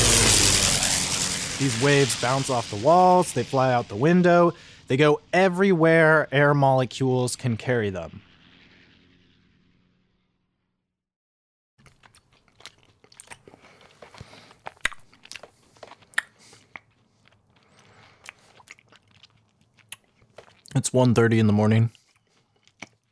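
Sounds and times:
low hum: 0.0 - 10.9
speech: 1.6 - 8.3, 20.8 - 22.0
person chewing a piece of chocolate: 11.8 - 20.8, 21.9 - 23.0.

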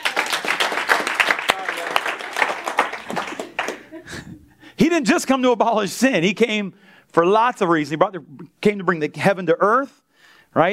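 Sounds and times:
audience clapping: 0.0 - 4.2
speech: 4.8 - 10.7.

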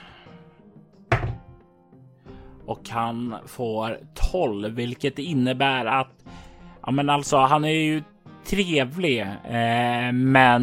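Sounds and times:
die being rolled: 1.1 - 1.6
speech: 2.7 - 6.2, 6.9 - 10.6.

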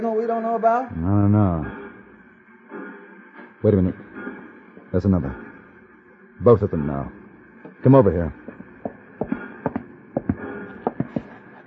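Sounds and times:
speech: 0.0 - 1.8, 3.6 - 4.1, 4.9 - 5.4, 6.4 - 7.2, 7.8 - 8.4
horse hooves clip-clopping: 8.4 - 11.6.

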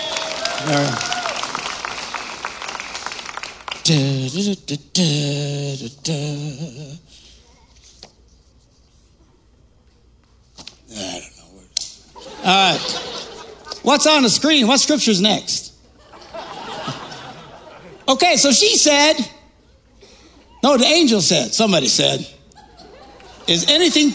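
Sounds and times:
audience clapping: 0.0 - 4.4
speech: 0.6 - 1.1, 3.9 - 7.2, 12.5 - 13.0, 13.8 - 15.6, 18.1 - 19.3, 20.6 - 22.4, 23.5 - 24.1
laughter: 12.1 - 14.4, 15.8 - 18.4, 21.8 - 24.1.

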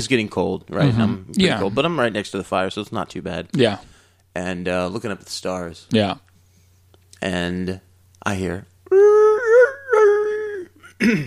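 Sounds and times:
speech: 0.0 - 6.3, 7.2 - 9.1, 11.0 - 11.2
human voice imitating coyote howls: 8.9 - 10.8.

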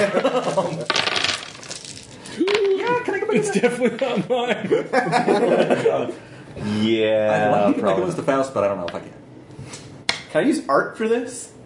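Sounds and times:
laughter: 0.0 - 0.9, 2.6 - 6.2
dice clattering across a hard surface: 0.1 - 2.8
speech: 3.3 - 9.1, 10.3 - 11.5.

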